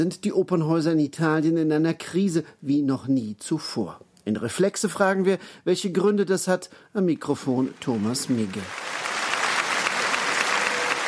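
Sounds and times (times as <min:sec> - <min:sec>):
speech: 0:00.0 - 0:09.1
sustained applause in a packed opera house in Rome after an opera chorus: 0:07.7 - 0:11.0.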